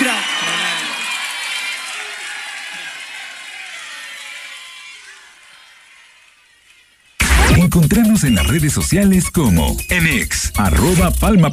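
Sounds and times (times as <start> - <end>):
audience applause: 0.0 - 7.2
crowd cheering: 0.0 - 11.5
speech: 7.7 - 11.5.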